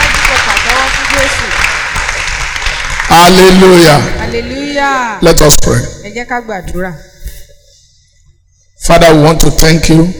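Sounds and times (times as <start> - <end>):
audience clapping: 0.0 - 4.2
speech: 3.1 - 7.1, 8.8 - 10.1.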